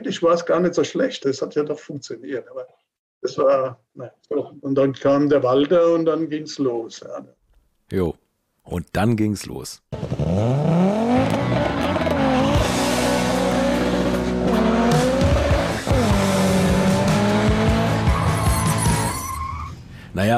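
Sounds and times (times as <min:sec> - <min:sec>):
speech: 0:00.0 - 0:11.4, 0:20.2 - 0:20.3
Opel Ascona rally car engine: 0:09.9 - 0:19.7
tires squealing: 0:10.0 - 0:19.9.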